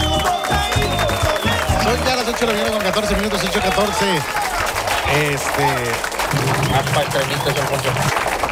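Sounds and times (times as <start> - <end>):
people clapping in a studio: 0.0 - 8.5
speech: 1.9 - 8.4.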